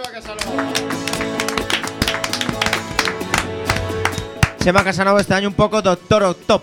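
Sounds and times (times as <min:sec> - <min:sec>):
applause: 0:00.0 - 0:05.0
speech: 0:00.2 - 0:00.9, 0:04.6 - 0:06.6.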